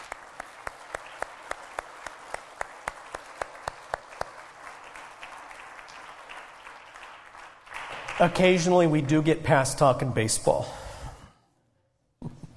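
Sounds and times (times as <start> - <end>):
audience applause: 0.0 - 9.6
speech: 8.2 - 10.8.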